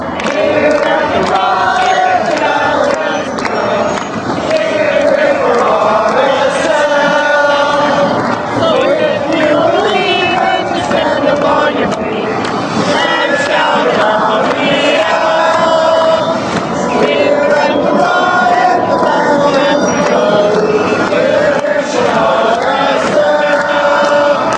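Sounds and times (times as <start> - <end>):
football fans chanting: 0.0 - 24.5.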